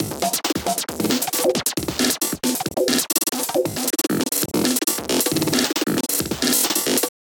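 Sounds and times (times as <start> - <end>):
drum beat: 0.0 - 7.1.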